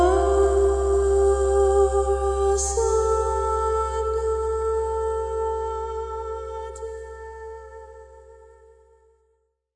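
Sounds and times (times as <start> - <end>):
mantra chanting: 0.0 - 7.7.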